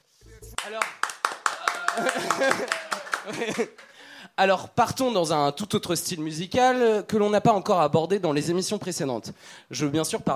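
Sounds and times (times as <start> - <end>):
audience clapping: 0.5 - 4.0
speech: 0.7 - 1.1, 2.0 - 10.3
laughter: 1.6 - 3.9.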